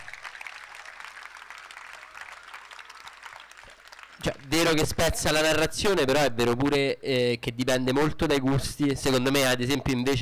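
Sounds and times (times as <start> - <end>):
audience applause: 0.0 - 5.0
speech: 4.2 - 10.1.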